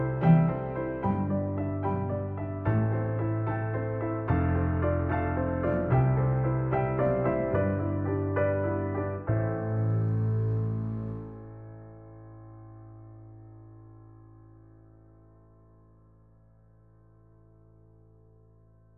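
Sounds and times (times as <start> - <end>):
piano symphony: 0.0 - 13.6.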